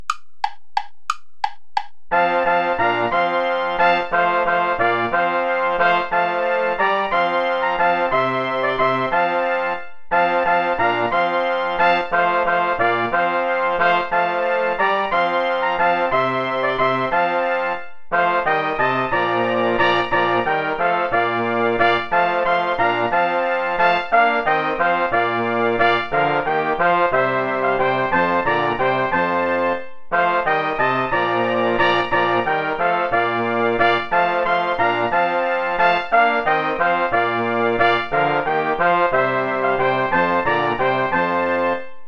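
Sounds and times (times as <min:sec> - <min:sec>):
play-along backing music without trumpet: 0:00.0 - 0:42.0.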